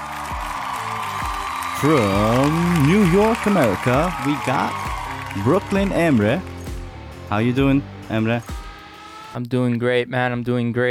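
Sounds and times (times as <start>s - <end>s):
applause: 0.0s - 6.8s
speech: 1.8s - 6.5s, 7.3s - 8.6s, 9.3s - 10.8s.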